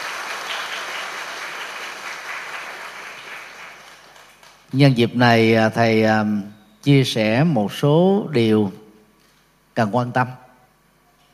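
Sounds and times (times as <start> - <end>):
applause: 0.0 - 4.8
speech: 4.7 - 8.8, 9.8 - 10.4.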